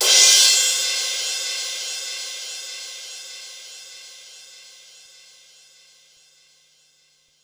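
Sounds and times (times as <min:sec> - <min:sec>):
Korg 05R-W crash cymbal: 0:00.0 - 0:04.5.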